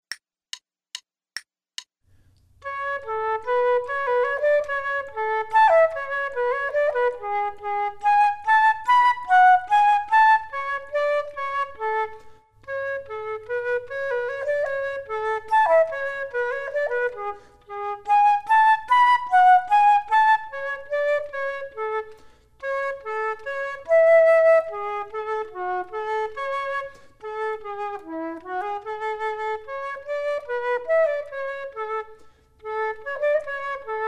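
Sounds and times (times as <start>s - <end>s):
flute duet: 2.6s - 34.0s.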